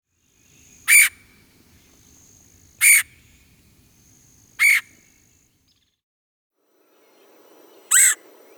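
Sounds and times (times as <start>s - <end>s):
red-headed woodpecker harsh buzzy calls: 0.4s - 5.4s.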